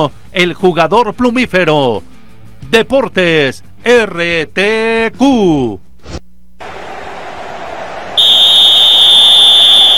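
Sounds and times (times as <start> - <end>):
speech: 0.0 - 2.1, 2.7 - 6.2
referee's final whistle: 8.1 - 9.9.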